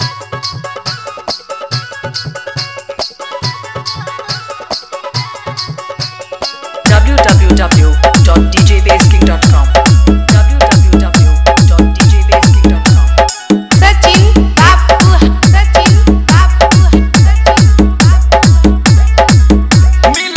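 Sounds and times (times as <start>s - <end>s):
hard vibration mix: 5.8s - 20.3s.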